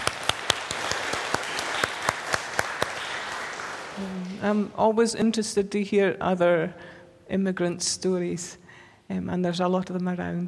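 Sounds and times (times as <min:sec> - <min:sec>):
audience clapping: 0:00.0 - 0:04.4
speech: 0:04.0 - 0:10.4.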